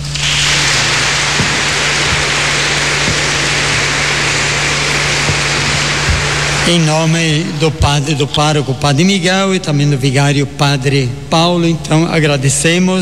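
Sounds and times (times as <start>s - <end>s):
loud crowd applause: 0.0s - 7.7s
low steady hum: 0.0s - 13.0s
speech: 6.6s - 13.0s.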